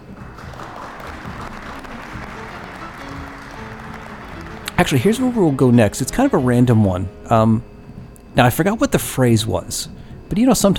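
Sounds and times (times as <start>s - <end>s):
applause: 0.0s - 6.0s
speech: 4.8s - 7.7s, 8.4s - 10.7s.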